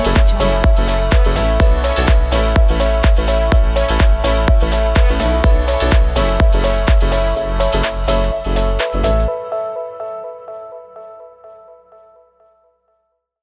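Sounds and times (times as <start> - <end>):
electronic summer house music: 0.0 - 9.9.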